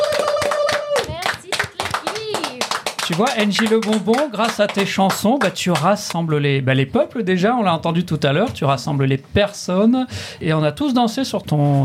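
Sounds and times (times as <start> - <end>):
applause: 0.0 - 6.2
speech: 3.1 - 11.8.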